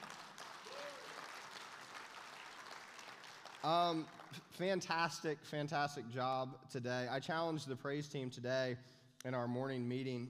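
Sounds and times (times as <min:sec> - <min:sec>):
audience applause: 0:00.0 - 0:04.4
speech: 0:03.6 - 0:10.2.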